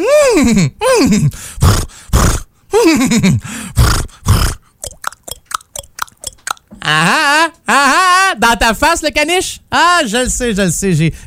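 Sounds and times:
person imitating a horse snorting and whinnying: 0.0s - 3.1s, 3.7s - 8.3s
speech: 0.4s - 1.8s, 2.8s - 3.9s, 6.9s - 11.2s
sharp tongue clicks like clopping hooves: 3.8s - 6.9s.

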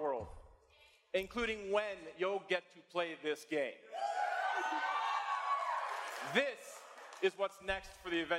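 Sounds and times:
speech: 1.1s - 4.1s, 6.2s - 8.3s
crowd cheering and whooping: 3.9s - 6.4s.

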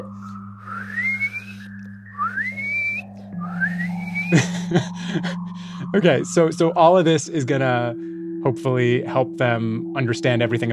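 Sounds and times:
speech: 0.0s - 0.4s, 4.3s - 10.7s
dolphin-like whistles from underwater sound transmitter: 0.0s - 4.8s
laughter: 4.3s - 5.9s.

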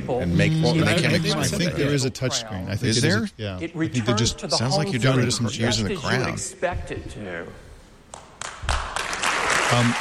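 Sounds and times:
speech: 0.1s - 7.7s, 9.7s - 9.9s
audience applause: 8.4s - 9.9s.

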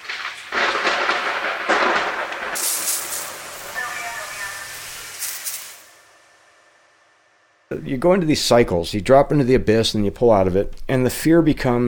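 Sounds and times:
thunder sound effect in a grocery store produce section: 0.0s - 6.4s
speech: 7.7s - 11.8s.

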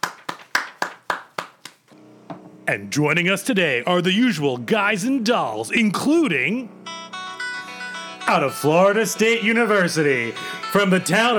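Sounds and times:
sharp hand claps: 0.0s - 1.9s
speech: 2.7s - 6.8s, 8.3s - 11.3s.

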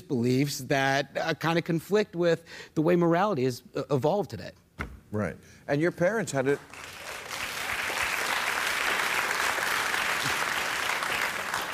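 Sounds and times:
speech: 0.1s - 7.0s
polite golf course style applause: 6.5s - 11.7s.

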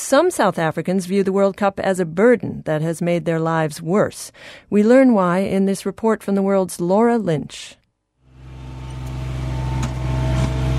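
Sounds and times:
speech: 0.0s - 7.8s
lawnmower engine running at Cape Town Stadium: 8.3s - 10.7s.

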